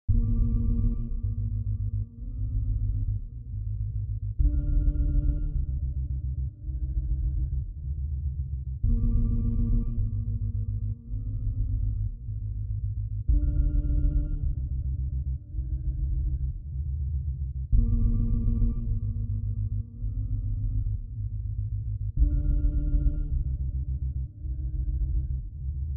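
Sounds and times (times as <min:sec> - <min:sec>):
meditative music loop: 0:00.1 - 0:25.8.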